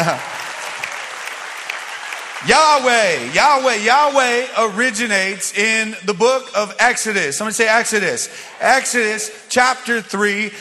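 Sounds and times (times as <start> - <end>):
speech: 0.0 - 0.3, 2.4 - 10.5
crowd applauding for the band: 0.0 - 4.9.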